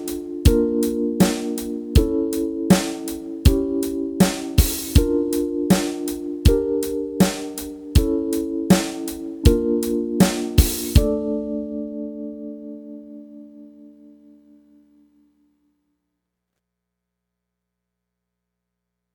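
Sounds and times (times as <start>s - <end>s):
etude in D minor without bass: 0.0s - 13.9s.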